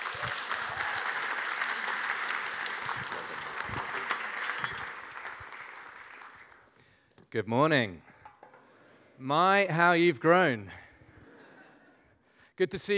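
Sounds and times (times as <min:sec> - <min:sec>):
audience applauding to welcome a speaker to the stage: 0:00.0 - 0:07.0
speech: 0:07.3 - 0:08.1, 0:09.2 - 0:10.8, 0:12.6 - 0:12.9.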